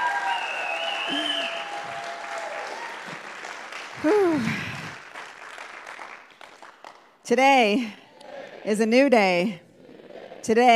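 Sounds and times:
audience applause: 0.0s - 7.1s
speech: 4.0s - 4.6s, 7.3s - 8.0s, 8.6s - 9.6s, 10.4s - 10.7s.

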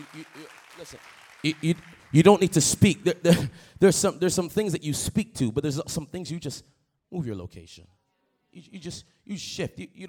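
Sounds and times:
audience clapping: 0.0s - 3.2s
speech: 0.0s - 10.0s.

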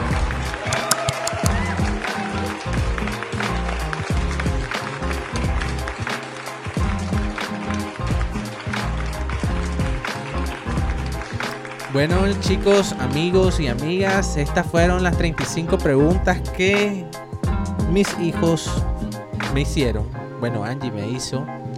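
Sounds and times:
applause: 0.0s - 13.1s
speech: 12.0s - 17.2s, 17.9s - 19.0s, 19.6s - 21.6s.

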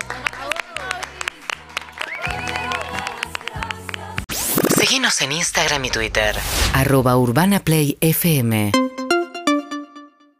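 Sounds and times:
applause: 0.0s - 4.3s
speech: 4.9s - 8.9s.

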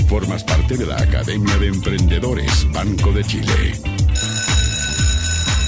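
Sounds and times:
speech: 0.1s - 3.9s
school bell ringing at the Academia de Emprendedores: 4.1s - 5.6s.

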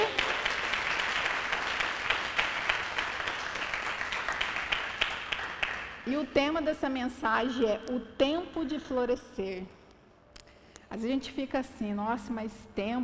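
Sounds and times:
audience applause: 0.0s - 6.0s
speech: 6.2s - 9.8s, 10.9s - 13.0s.

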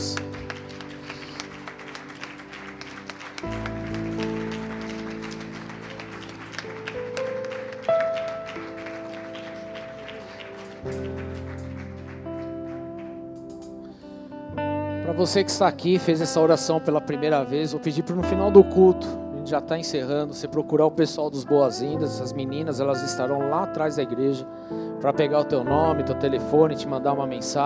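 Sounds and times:
audience applauding: 0.0s - 13.8s
sustained keyboard chords: 0.0s - 27.6s
speech: 3.4s - 3.7s, 15.2s - 27.6s.

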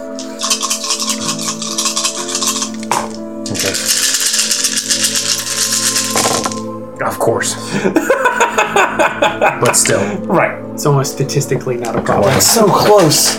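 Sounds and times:
many dice rolling and rattling: 0.2s - 6.6s
speech: 3.5s - 4.0s, 7.1s - 8.1s, 8.8s - 13.3s
laughter: 7.6s - 10.2s.

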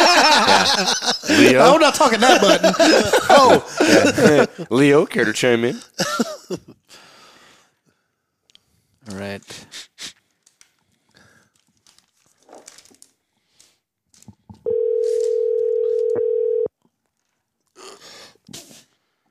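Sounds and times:
laughter: 0.0s - 5.1s, 6.0s - 6.7s
speech: 0.8s - 6.8s, 9.1s - 9.8s
telephone dial tone: 14.7s - 16.7s.

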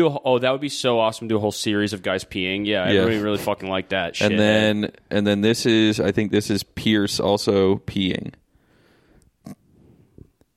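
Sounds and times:
speech: 0.0s - 8.4s
person snorting like a pig: 9.4s - 10.4s.

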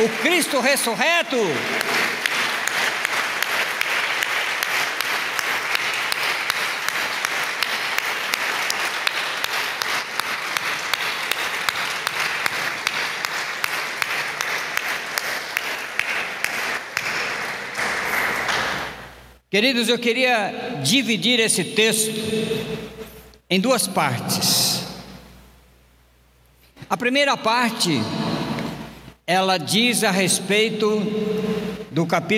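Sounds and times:
speech: 0.0s - 2.2s, 19.5s - 24.7s, 27.0s - 28.2s, 29.3s - 32.3s
audience applause: 0.0s - 19.0s.

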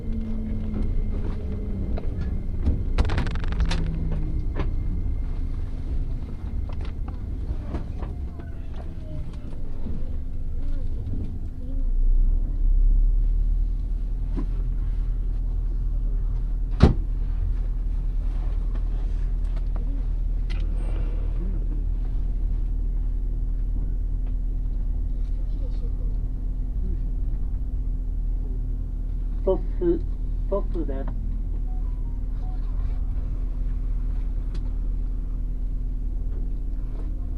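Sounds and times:
deep constant drone: 0.0s - 37.3s
train rumble heard from inside: 0.0s - 37.3s
clattering: 3.0s - 4.2s.

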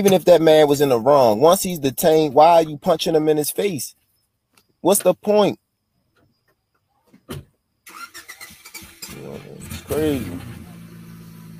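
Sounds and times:
speech: 0.0s - 4.0s, 4.8s - 5.6s, 7.3s - 7.5s, 9.1s - 10.6s
Volkswagen Beetle engine starting: 7.8s - 11.5s.

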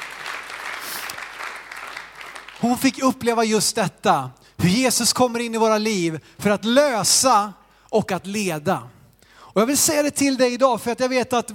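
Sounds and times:
audience applause: 0.0s - 2.6s
speech: 2.6s - 9.0s, 9.6s - 11.5s.

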